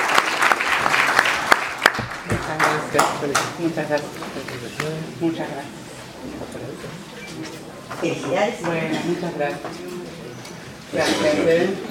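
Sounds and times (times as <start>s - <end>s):
crowd clapping at a national communication awards ceremony: 0.0s - 5.0s
speech: 2.0s - 9.9s, 10.9s - 11.8s.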